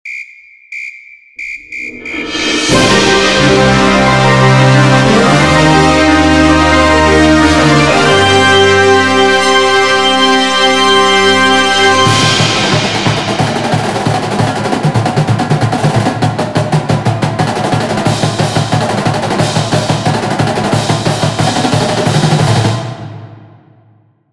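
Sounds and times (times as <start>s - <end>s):
marching show band music: 1.4s - 23.3s.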